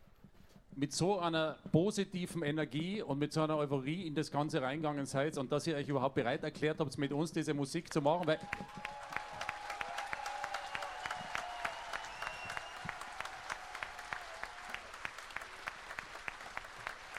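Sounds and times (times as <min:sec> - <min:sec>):
speech: 0:00.8 - 0:09.0
audience applause: 0:08.2 - 0:17.1.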